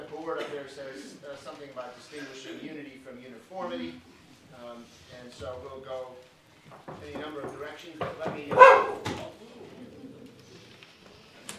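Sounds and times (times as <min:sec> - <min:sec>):
speech: 0:00.3 - 0:09.9
dog barking: 0:08.5 - 0:09.2.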